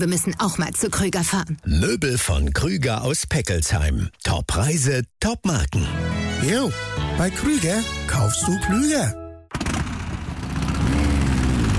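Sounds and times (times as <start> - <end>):
speech: 0.0 - 9.2
vintage motorcycle engine revving: 9.5 - 11.7.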